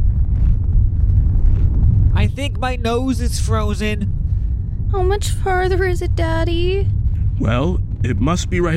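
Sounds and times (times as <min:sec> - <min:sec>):
blizzard wind roaring: 0:00.0 - 0:08.7
speech: 0:02.3 - 0:04.2, 0:04.9 - 0:08.7.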